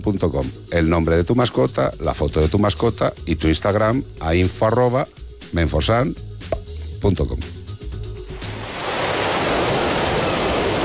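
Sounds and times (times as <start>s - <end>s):
speech: 0.0s - 7.6s
ocean waves washing onto a beach: 8.3s - 10.8s.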